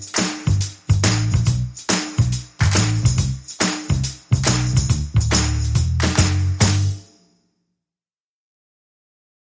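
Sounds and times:
bass: 0.0 - 7.0
drums: 0.0 - 7.1.

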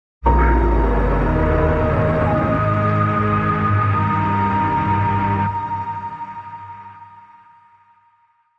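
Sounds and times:
music sting: 0.3 - 6.1
underworld atmosphere: 0.3 - 7.4.

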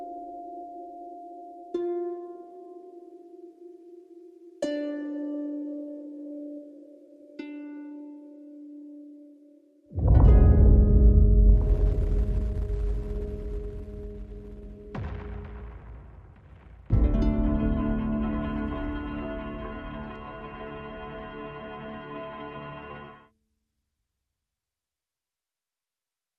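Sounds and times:
harp: 0.0 - 12.2, 16.9 - 23.3
sound effects: 9.9 - 23.3
synth bass: 10.0 - 15.9, 16.9 - 23.3.

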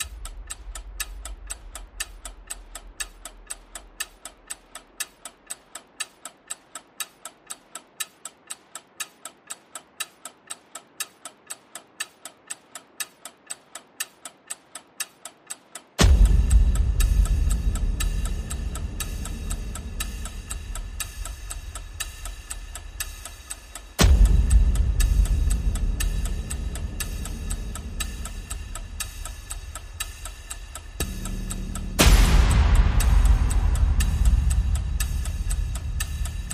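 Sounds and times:
percussion ticks: 0.0 - 36.5
percussion hits: 16.0 - 36.5.

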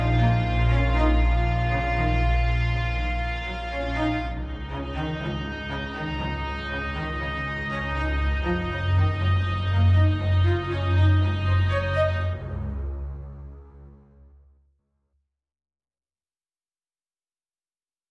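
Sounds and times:
strings: 0.0 - 14.2.

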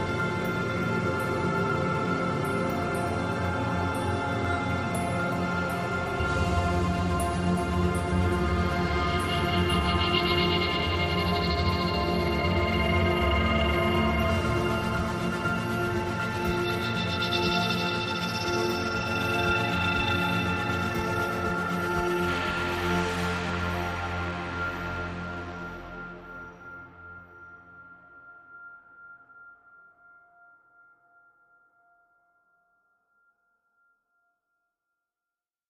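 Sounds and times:
oratorio drone: 0.0 - 28.4.

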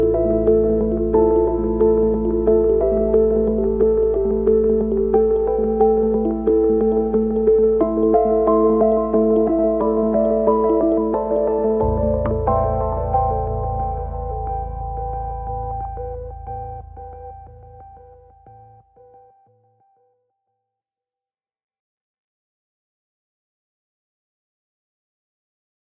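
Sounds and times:
bass: 0.0 - 19.0
synths: 0.0 - 19.0.

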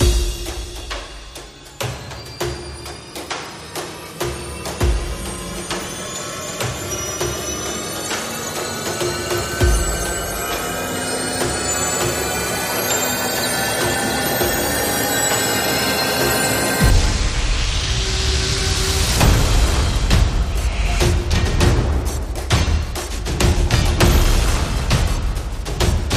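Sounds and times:
percussion: 0.0 - 26.1.

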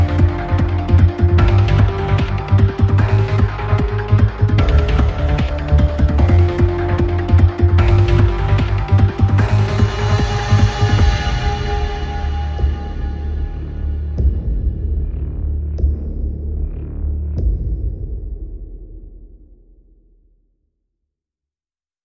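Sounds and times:
pulsing synth: 0.0 - 15.3
percussion: 0.0 - 20.0.

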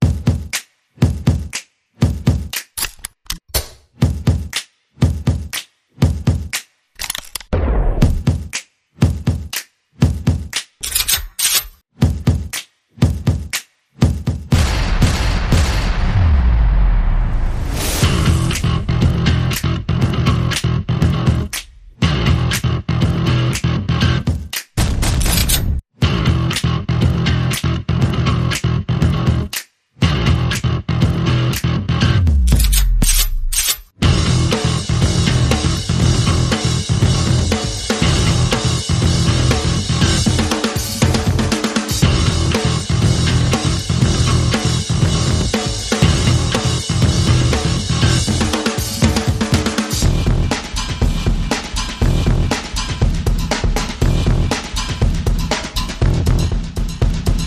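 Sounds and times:
percussion: 0.0 - 16.0, 17.6 - 27.7, 28.3 - 30.7, 31.5 - 57.4
bass: 14.5 - 57.4.

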